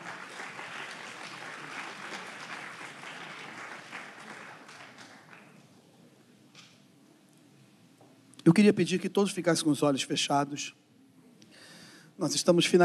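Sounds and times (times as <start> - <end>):
audience applause: 0.0 - 5.7
speech: 8.5 - 10.8, 12.2 - 12.8.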